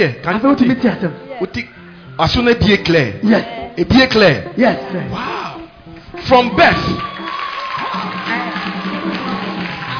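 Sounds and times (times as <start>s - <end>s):
speech: 0.0s - 5.4s, 6.2s - 7.1s
audience clapping: 6.4s - 9.9s.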